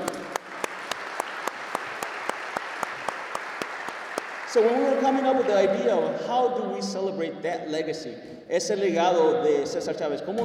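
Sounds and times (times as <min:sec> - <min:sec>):
crowd applauding: 0:00.0 - 0:06.2
speech: 0:04.5 - 0:10.4.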